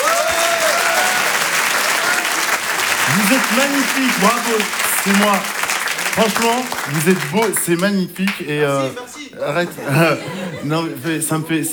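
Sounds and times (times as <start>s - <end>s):
audience applause: 0.0s - 11.7s
laughter: 0.0s - 11.7s
speech: 3.1s - 5.6s, 6.2s - 11.7s.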